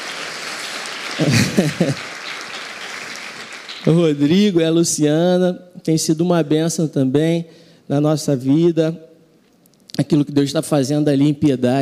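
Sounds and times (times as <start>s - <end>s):
audience applause: 0.0s - 4.2s
laughter: 1.1s - 2.5s
speech: 1.2s - 2.2s, 3.8s - 9.1s, 10.0s - 11.8s.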